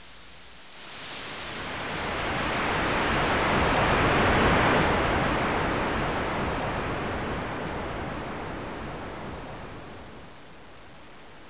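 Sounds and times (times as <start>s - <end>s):
ocean: 0.9s - 10.2s.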